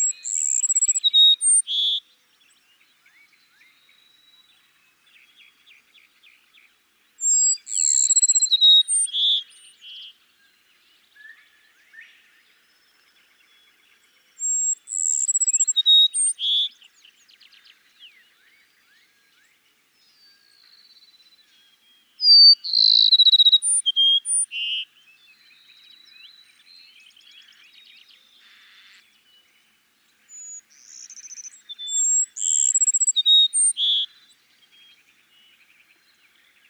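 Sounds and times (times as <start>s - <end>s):
Cassin's sparrow whistled and buzzy trill song: 0.0s - 4.6s, 7.2s - 9.9s, 14.4s - 19.5s, 20.2s - 29.0s, 30.2s - 36.6s.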